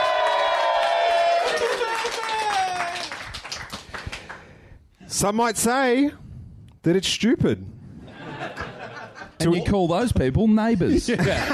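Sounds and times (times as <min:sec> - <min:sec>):
audience cheering and whoops: 0:00.0 - 0:03.2
live lounge room audience applause at a podcast recording: 0:00.0 - 0:04.4
speech: 0:05.2 - 0:06.2, 0:06.8 - 0:07.8, 0:09.4 - 0:11.5
laughter: 0:08.1 - 0:09.8, 0:10.9 - 0:11.5.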